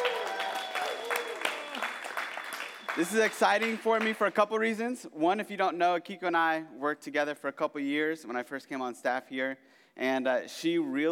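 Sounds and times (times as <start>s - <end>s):
audience round of applause: 0.0s - 4.2s
speech: 3.0s - 11.1s.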